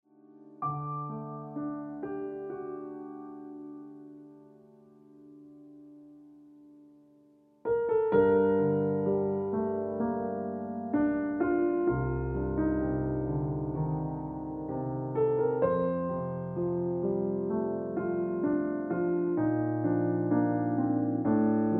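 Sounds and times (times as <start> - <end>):
piano ringtone music: 0.4 - 6.3, 7.6 - 21.7.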